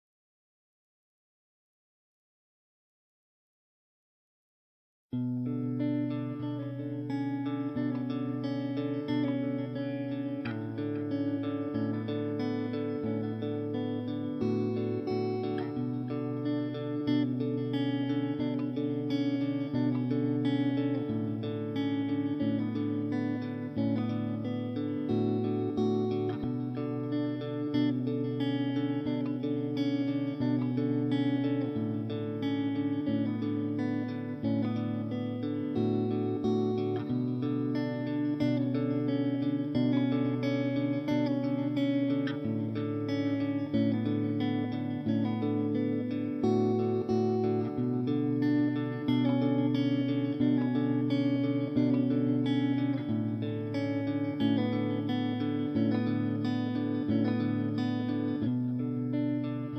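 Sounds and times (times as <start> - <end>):
guitar stems: 5.2 - 59.7.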